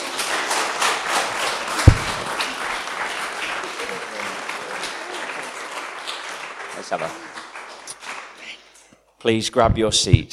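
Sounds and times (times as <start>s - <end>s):
crowd applauding: 0.0s - 8.7s
loud thump: 1.8s - 2.4s
speech: 6.9s - 7.3s, 9.2s - 10.3s.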